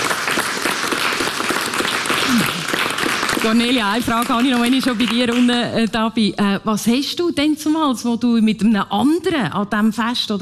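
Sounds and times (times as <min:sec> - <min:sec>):
audience applause: 0:00.0 - 0:05.6
speech: 0:03.4 - 0:10.4.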